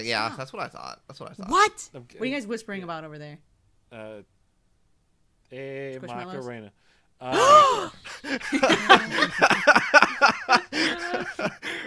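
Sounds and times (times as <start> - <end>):
speech: 0.0 - 4.4, 5.5 - 11.8
gasp sound effect: 7.3 - 8.5
laughter: 7.4 - 11.8.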